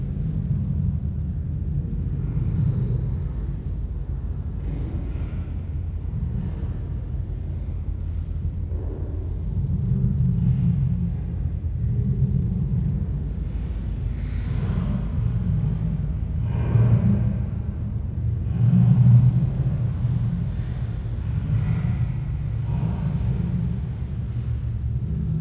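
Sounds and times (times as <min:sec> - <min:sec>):
eerie noise atmosphere: 0:00.0 - 0:25.4.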